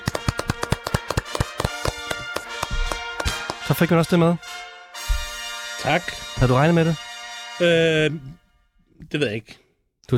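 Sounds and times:
crowd small round of applause: 0.0 - 3.7
speech: 3.7 - 4.6, 5.8 - 7.0, 7.6 - 8.4, 9.0 - 10.1.

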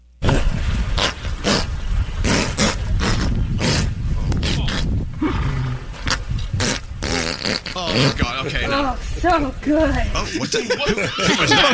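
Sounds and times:
horse fart: 0.2 - 8.4
speech: 8.0 - 11.7
laughter: 10.1 - 11.7.

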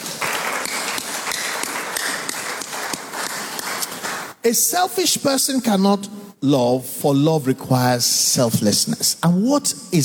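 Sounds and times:
audience clapping: 0.0 - 4.5
speech: 4.4 - 10.0.

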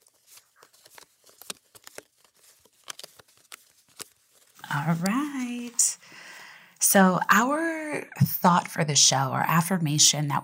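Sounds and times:
deck of cards being shuffled: 0.0 - 5.9
speech: 4.7 - 6.0, 6.9 - 10.4.

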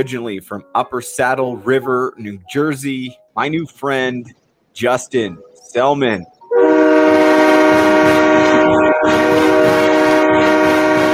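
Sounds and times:
speech: 0.0 - 7.3
hockey goal horn: 6.5 - 11.1.

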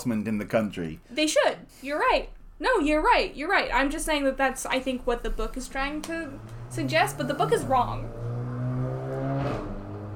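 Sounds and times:
speech: 0.0 - 8.3
motorbike engine revving: 5.2 - 10.1.

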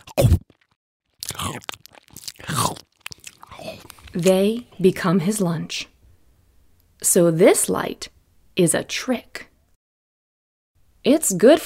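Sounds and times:
chomping bite: 0.0 - 4.5
speech: 4.2 - 5.9, 7.0 - 9.5, 11.0 - 11.6.

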